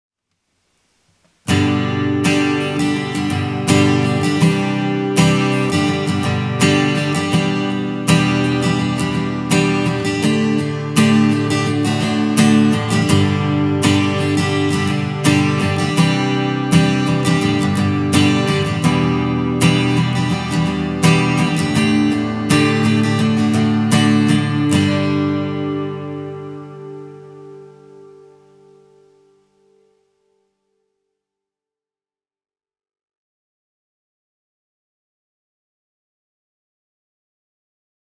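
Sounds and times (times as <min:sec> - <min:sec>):
acoustic guitar through Universal Audio Bock 187 with compression: 0:01.4 - 0:30.2.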